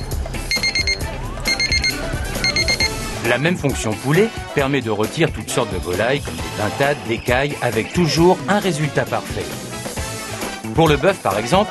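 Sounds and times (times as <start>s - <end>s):
oven electronic beep signalling cooking finished: 0.0s - 3.0s
speech: 3.3s - 9.6s, 10.7s - 11.7s.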